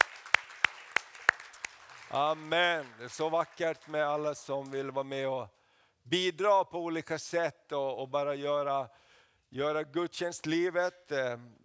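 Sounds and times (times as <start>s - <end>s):
audience applauding the dancers: 0.0s - 5.0s
speech: 2.1s - 11.6s.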